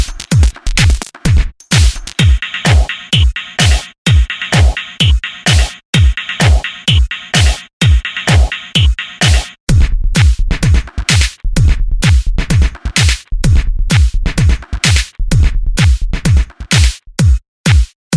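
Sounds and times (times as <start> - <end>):
tech house top loops: 0.0 - 18.1.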